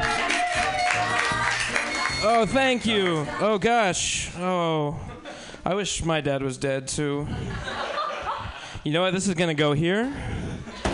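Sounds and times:
audience clapping: 0.0 - 3.4
speech: 2.2 - 7.9, 8.8 - 10.4
laughter: 7.2 - 8.8.

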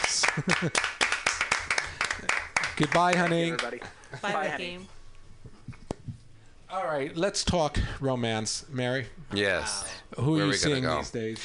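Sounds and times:
round of applause: 0.0 - 3.8
speech: 0.4 - 1.0, 2.2 - 5.0, 6.7 - 11.4.

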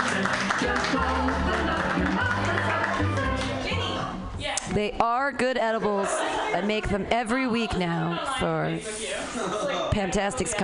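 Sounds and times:
laughter: 0.0 - 3.4, 5.7 - 10.2
audience clapping: 0.0 - 4.0
speech: 4.8 - 10.6.

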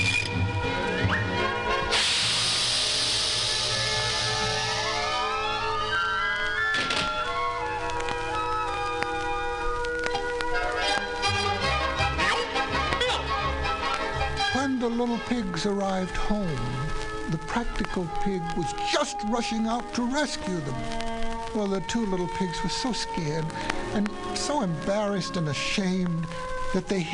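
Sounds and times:
busy orchestral music: 0.0 - 27.1
lit skyrocket hissing and firing: 1.8 - 5.9
speech: 15.6 - 27.1.

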